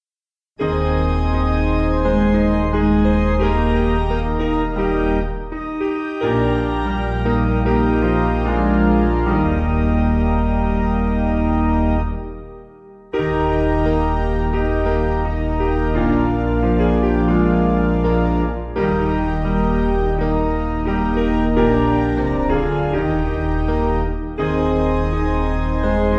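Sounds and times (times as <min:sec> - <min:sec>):
piano: 0:00.6 - 0:26.1.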